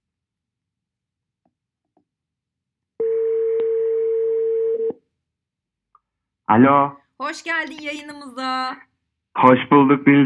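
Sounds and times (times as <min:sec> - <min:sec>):
phone call ringback tone: 0:03.0 - 0:04.9
speech: 0:06.5 - 0:10.2.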